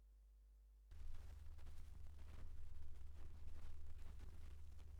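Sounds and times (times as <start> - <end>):
record noise: 0.9 - 4.9.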